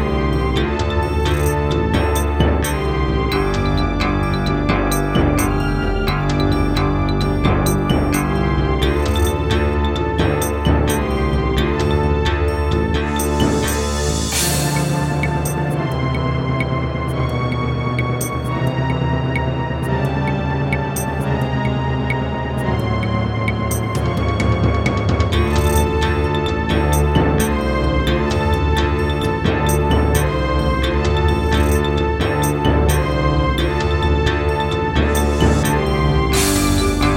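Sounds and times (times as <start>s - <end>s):
Roland PMA-5 wavetable synthesizer: 0.0s - 37.1s.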